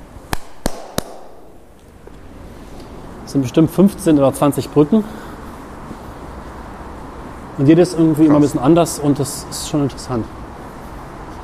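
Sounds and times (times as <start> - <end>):
hand clap echoing under a bridge: 0.3 - 1.6
speech: 3.3 - 5.3, 7.6 - 10.4.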